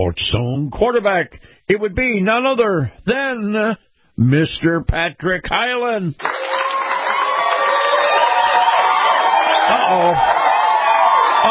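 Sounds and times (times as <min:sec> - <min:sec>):
speech: 0:00.0 - 0:06.6, 0:09.7 - 0:10.4
crowd cheering: 0:06.2 - 0:11.5.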